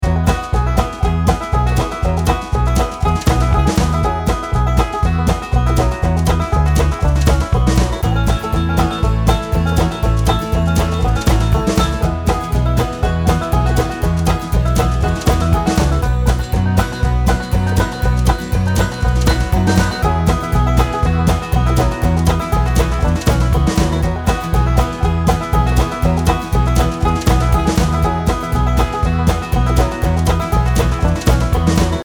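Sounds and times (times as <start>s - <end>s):
banjo: 0.0s - 32.0s.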